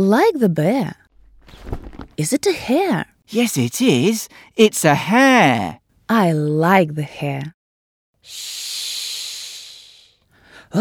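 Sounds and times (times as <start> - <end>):
speech: 0.0 - 1.0, 2.2 - 7.6
snake hissing: 8.2 - 10.2.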